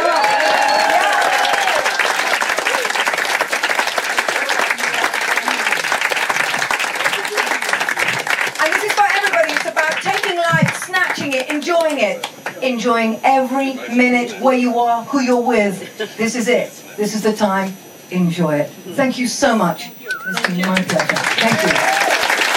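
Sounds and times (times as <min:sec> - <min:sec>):
audience applause and clapping: 0:00.0 - 0:12.6, 0:19.7 - 0:22.5
speech: 0:12.8 - 0:22.0.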